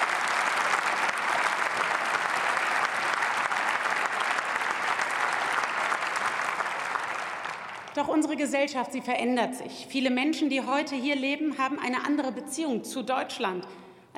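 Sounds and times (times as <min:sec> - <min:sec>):
applause in the German Bundestag welcoming a guest: 0:00.0 - 0:08.0
speech: 0:08.0 - 0:14.1.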